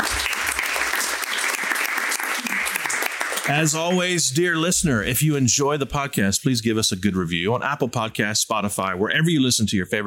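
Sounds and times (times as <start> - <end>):
audience applause: 0.0 - 4.1
speech: 3.5 - 10.0.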